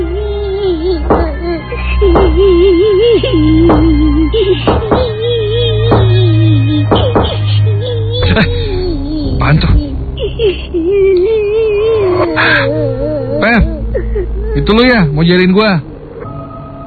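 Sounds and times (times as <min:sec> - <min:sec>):
child crying: 0:00.0 - 0:15.6
knocking on a toilet door: 0:01.1 - 0:01.4, 0:04.7 - 0:05.1
speech: 0:03.4 - 0:05.1, 0:08.4 - 0:08.6, 0:09.4 - 0:09.8, 0:12.2 - 0:13.8, 0:14.6 - 0:15.9.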